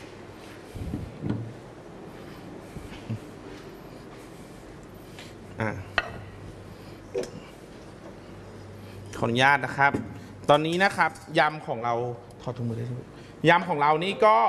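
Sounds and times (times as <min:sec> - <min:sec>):
speech: 0:05.6 - 0:05.9, 0:09.2 - 0:14.4
serving plate knocking and clinking during a Thai salad cooking lesson: 0:06.0 - 0:06.3.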